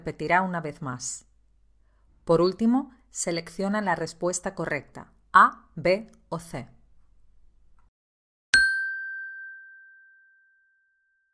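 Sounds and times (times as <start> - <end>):
speech: 0.0 - 1.3, 2.3 - 6.8
bright signal chime: 8.6 - 11.1.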